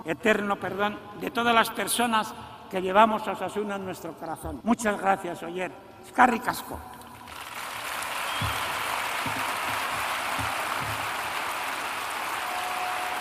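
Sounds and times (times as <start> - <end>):
speech: 0.1 - 7.0
large stadium crowd applauding in an ovation: 7.3 - 13.1.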